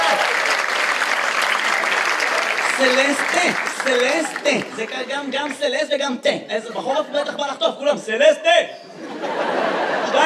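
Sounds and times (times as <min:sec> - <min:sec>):
crowd applause: 0:00.0 - 0:05.6
laughter: 0:02.3 - 0:05.5, 0:06.5 - 0:07.9, 0:08.9 - 0:10.2
speech: 0:02.8 - 0:09.2.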